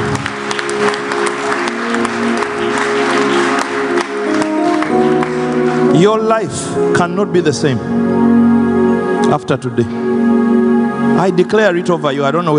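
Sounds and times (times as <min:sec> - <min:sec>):
large audience applauding: 0:00.0 - 0:06.4
sustained musical tone: 0:00.0 - 0:12.5
speech: 0:06.0 - 0:08.3, 0:09.3 - 0:10.1, 0:11.1 - 0:12.5.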